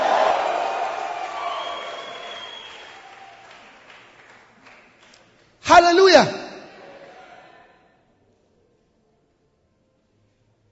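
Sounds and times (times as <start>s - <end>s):
audience clapping: 0.0s - 6.0s
speech: 5.8s - 6.4s.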